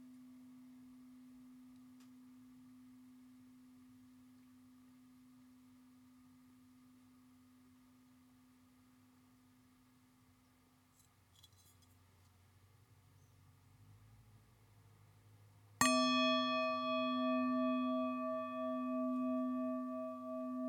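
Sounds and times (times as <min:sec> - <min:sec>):
singing bowl: 0:15.8 - 0:20.6.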